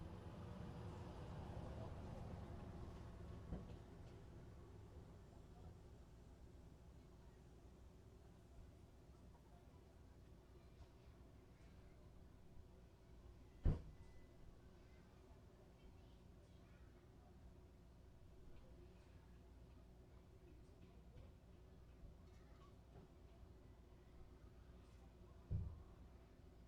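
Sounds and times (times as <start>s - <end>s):
summer beach parking lot ambience: 0.0s - 26.5s.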